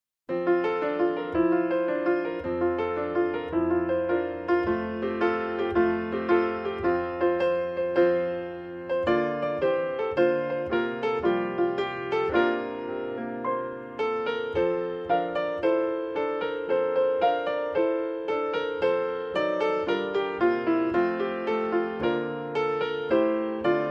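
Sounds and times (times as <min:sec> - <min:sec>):
solo piano carol: 0:00.3 - 0:23.8.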